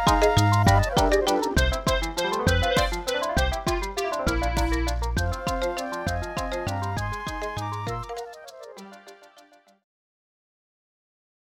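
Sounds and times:
waltz music: 0.0s - 9.2s.

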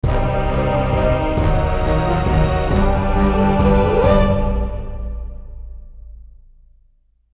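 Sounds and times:
combat victory music sting: 0.0s - 5.9s.

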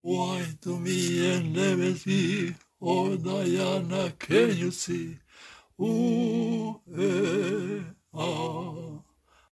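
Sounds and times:
person singing: 0.0s - 5.2s, 5.8s - 9.1s.

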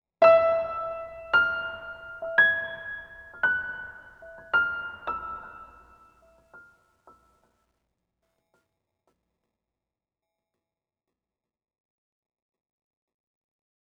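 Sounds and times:
piano one shot: 0.2s - 6.0s.

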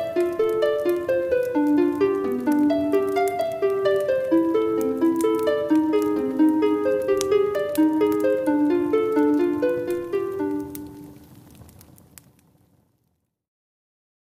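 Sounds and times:
lute melody: 0.0s - 11.4s.

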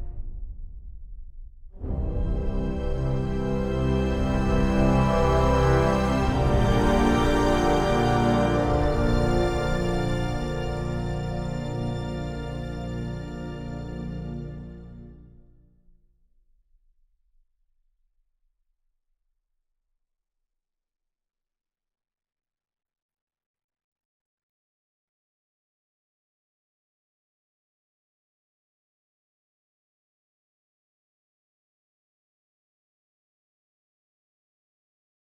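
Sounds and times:
ambient music without percussion: 1.8s - 15.6s.

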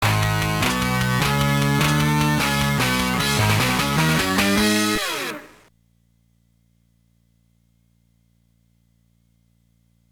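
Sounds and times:
triumphant battle end music: 0.0s - 5.3s.

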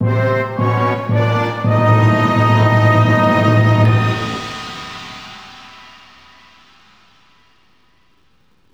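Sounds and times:
fanfare: 0.0s - 5.1s.

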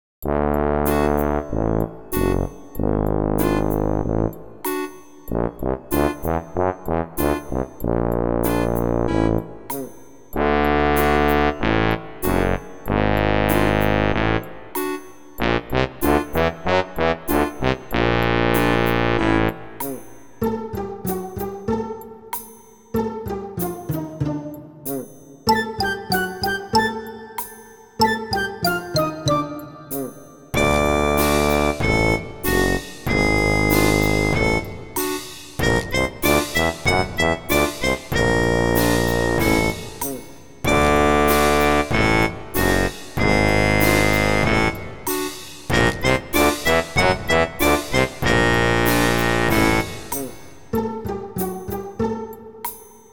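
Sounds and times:
tuba: 0.2s - 22.0s, 23.1s - 27.1s, 28.0s - 52.2s.

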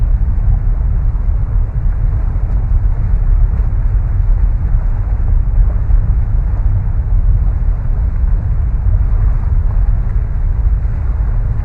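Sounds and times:
lava flowing: 0.0s - 11.6s.

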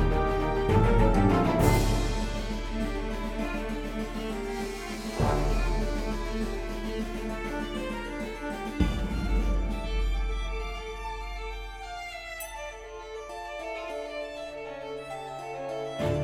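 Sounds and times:
intense battle music: 0.0s - 12.4s.

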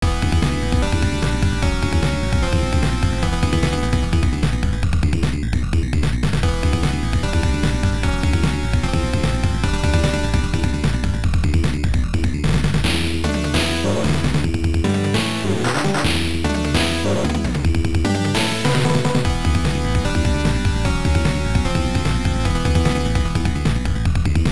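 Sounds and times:
boss battle background music: 0.0s - 24.5s.

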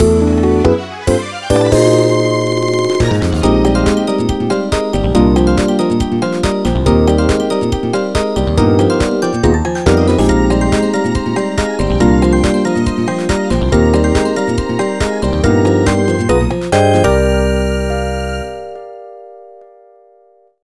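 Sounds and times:
level end jingle: 0.0s - 18.9s.

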